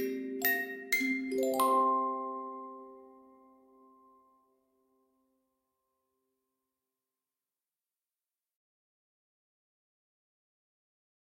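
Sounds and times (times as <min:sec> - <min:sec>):
lullaby music: 0:00.0 - 0:05.2.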